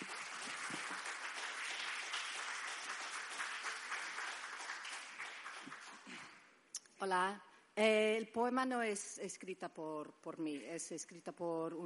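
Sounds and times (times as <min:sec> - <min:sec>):
audience applauding loudly: 0:00.0 - 0:06.3
speech: 0:07.0 - 0:11.8.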